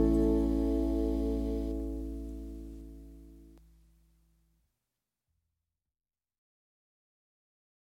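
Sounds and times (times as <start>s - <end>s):
Hawaiian instrumental song: 0.0s - 3.6s.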